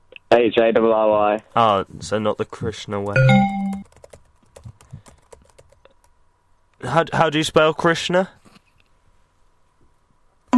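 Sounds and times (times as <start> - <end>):
speech: 0.3 - 3.6, 6.9 - 8.4
typing details into a computer keyboard: 2.4 - 6.1.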